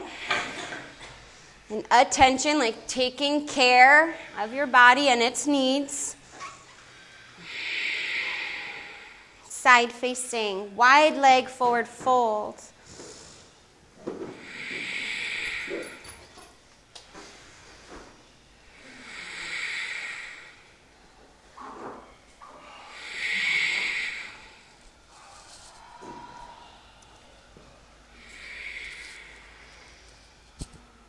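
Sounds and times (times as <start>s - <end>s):
speech: 1.7s - 6.0s, 9.7s - 12.7s
forceful breathing in and out through the nose during yoga purification practice: 6.8s - 9.5s, 14.3s - 16.2s, 18.6s - 21.2s, 22.6s - 31.0s.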